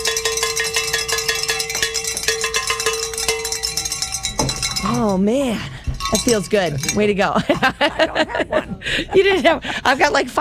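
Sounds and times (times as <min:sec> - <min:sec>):
handbells ringing: 0:00.0 - 0:07.4
speech: 0:05.0 - 0:10.3
laughter: 0:07.2 - 0:10.3.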